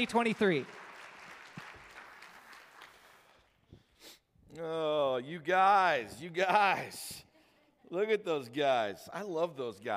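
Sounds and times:
speech: 0:00.0 - 0:00.8, 0:04.5 - 0:07.3, 0:07.9 - 0:09.9
faint applause from a church congregation: 0:00.0 - 0:03.5.

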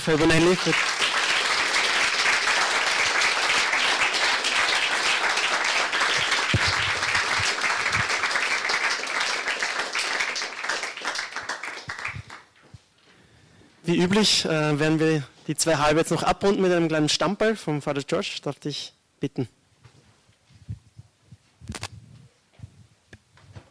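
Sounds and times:
speech: 0:00.0 - 0:01.0, 0:13.9 - 0:19.6
audience applause: 0:00.0 - 0:12.5.

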